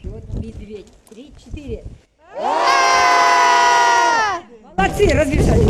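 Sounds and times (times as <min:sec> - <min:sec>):
speech: 0:00.5 - 0:02.6, 0:05.0 - 0:05.6
group of children shouting loudly to scare a bear: 0:02.3 - 0:04.5.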